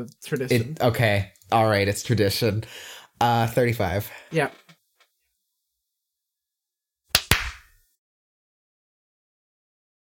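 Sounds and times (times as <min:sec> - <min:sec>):
speech: 0:00.0 - 0:04.6
hand clap: 0:07.1 - 0:07.8.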